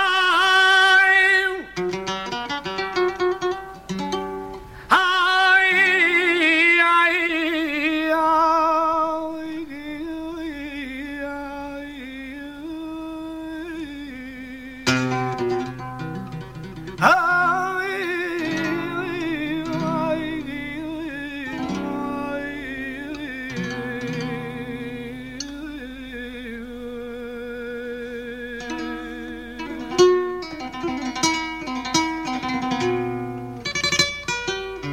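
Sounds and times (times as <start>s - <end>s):
person singing a taranta: 0.0s - 1.8s, 4.9s - 15.7s, 17.0s - 32.2s
guitar accompanying a taranta: 1.6s - 5.0s, 14.8s - 26.3s, 28.3s - 34.9s.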